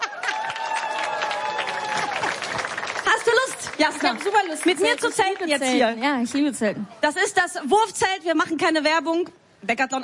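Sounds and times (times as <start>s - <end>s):
audience applauding a tent crew: 0.0s - 6.5s
speech: 3.8s - 10.0s.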